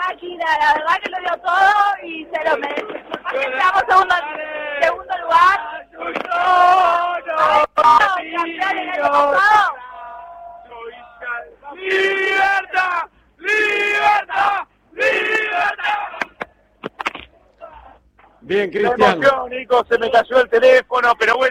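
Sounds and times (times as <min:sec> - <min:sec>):
large crowd of fans cheering and chanting: 0:00.0 - 0:16.5
speech: 0:00.2 - 0:05.7, 0:18.5 - 0:21.4.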